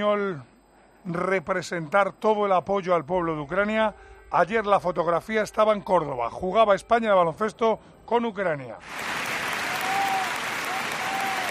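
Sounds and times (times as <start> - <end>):
speech: 0.0 - 9.3
Spanish basketball fans applauding Ukraine's national team in Córdoba: 8.8 - 11.4.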